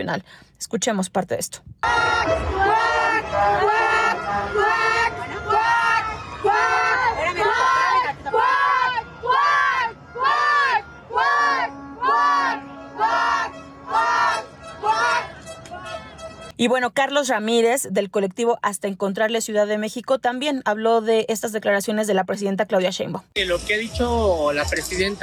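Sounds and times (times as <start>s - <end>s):
speech: 0.0s - 4.8s, 16.6s - 25.2s
crowd of women chanting quack imitating ducks: 1.8s - 16.1s.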